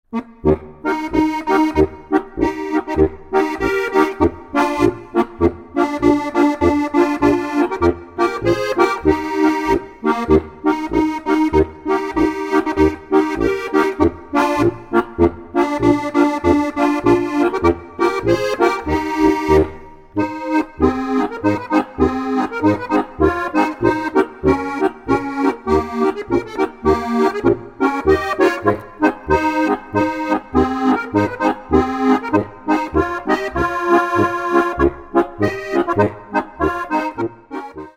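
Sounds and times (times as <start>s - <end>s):
polka music: 0.1s - 37.9s.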